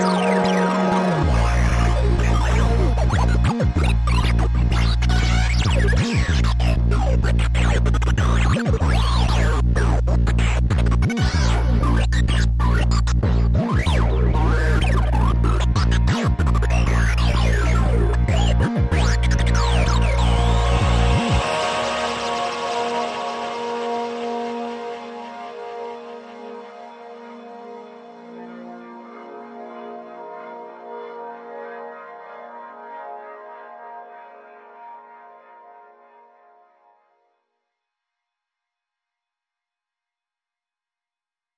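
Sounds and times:
minimal electro music without drums: 0.0 - 26.7.

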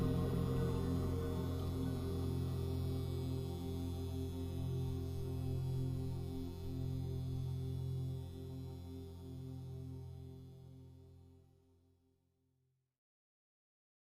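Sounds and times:
drones: 0.0 - 10.1.

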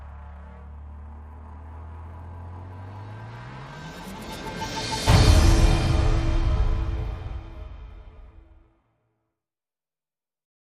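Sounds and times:
sound effects: 0.0 - 8.7
drums: 3.6 - 8.6.

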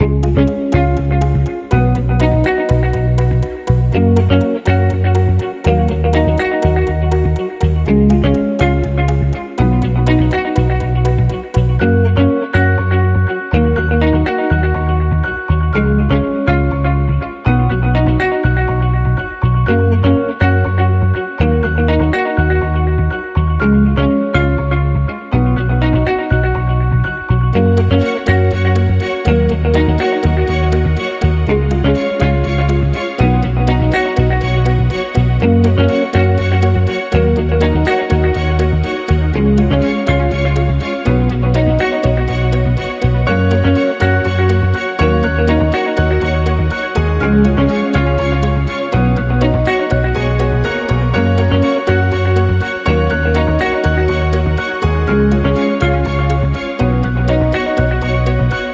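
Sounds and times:
music without drums: 0.0 - 58.7.

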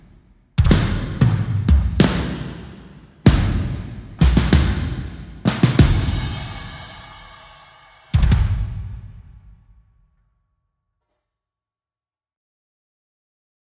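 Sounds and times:
drum kit: 0.0 - 9.7.

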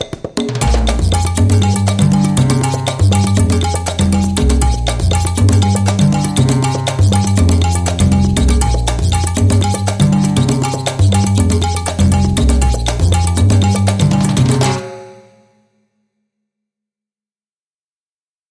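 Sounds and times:
big band mambo music: 0.3 - 15.1
drum and bass: 0.5 - 14.9.

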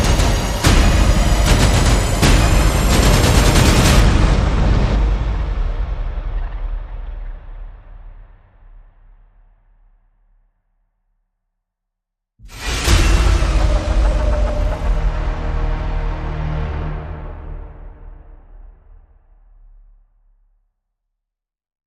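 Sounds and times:
horror version of a nursery rhyme without melody: 0.0 - 8.5, 12.5 - 19.8.

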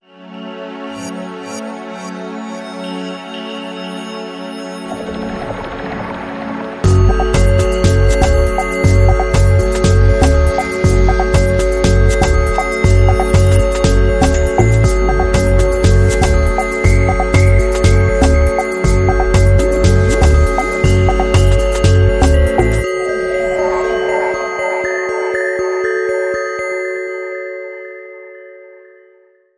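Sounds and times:
dub music: 6.8 - 26.1.

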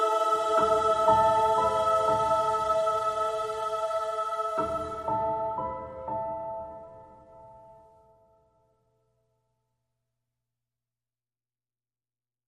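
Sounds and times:
dreamy ambient music: 0.0 - 8.7.

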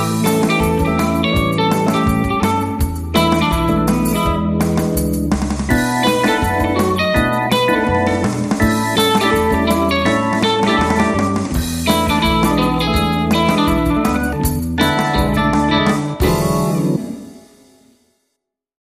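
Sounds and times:
bombo drum in Bahia version: 0.0 - 17.8
guitar: 0.0 - 17.9.

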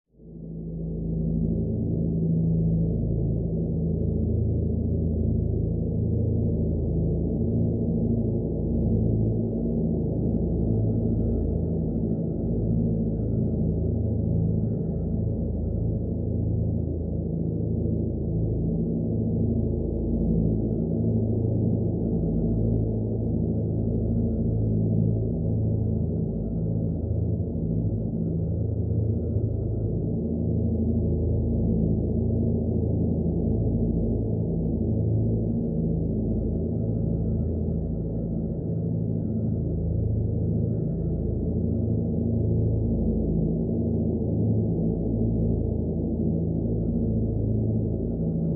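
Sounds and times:
wind farm drone: 0.2 - 48.5.

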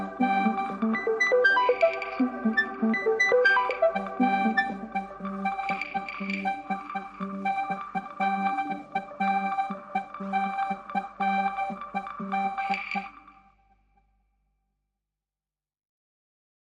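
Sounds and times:
electronic bleeps: 0.0 - 13.3.

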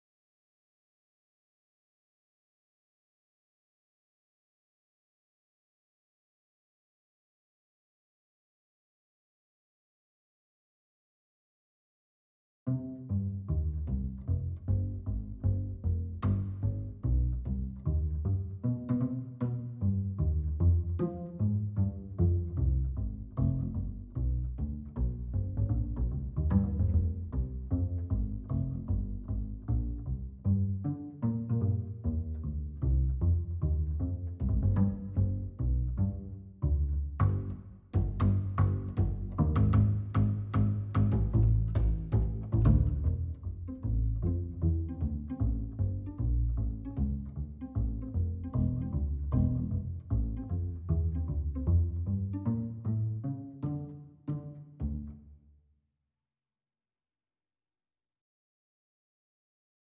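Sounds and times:
bass: 12.7 - 55.4.

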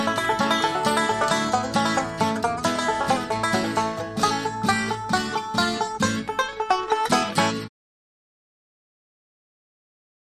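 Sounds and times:
banjo tune: 0.0 - 7.7.

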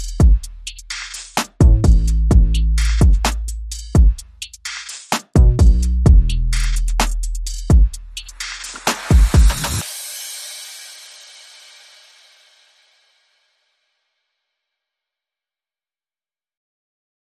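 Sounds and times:
bass: 0.0 - 9.8
drums: 0.0 - 13.4.

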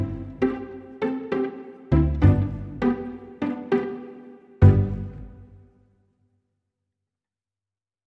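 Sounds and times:
reduced strings only: 0.0 - 5.7.

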